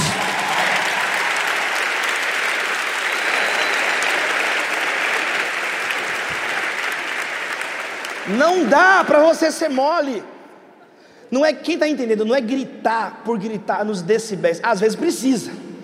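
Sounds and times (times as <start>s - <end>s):
audience applauding: 0.0s - 10.0s
speech: 8.3s - 10.3s, 11.3s - 15.6s.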